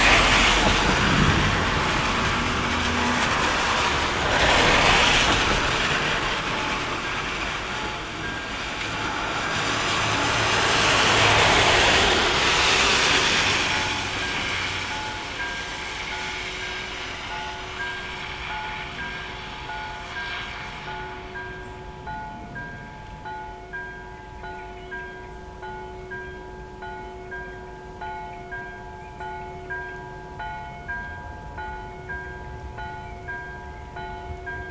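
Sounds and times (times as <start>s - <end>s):
thunder: 0.0s - 14.9s
airplanes: 0.0s - 23.2s
rain: 0.0s - 23.6s
cars: 0.0s - 34.6s
church bells ringing: 6.3s - 12.1s, 13.0s - 34.6s.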